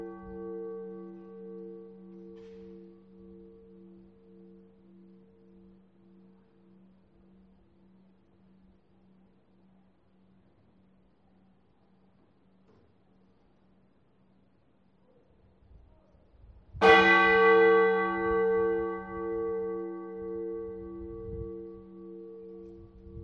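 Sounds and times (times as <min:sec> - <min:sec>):
bell: 0:00.0 - 0:07.9, 0:16.8 - 0:23.2.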